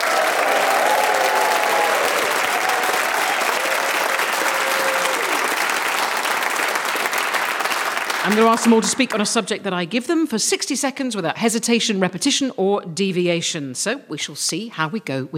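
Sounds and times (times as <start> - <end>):
live audience whooping and cheering: 0.0 - 8.1
live audience applause: 0.0 - 9.2
speech: 8.3 - 15.3.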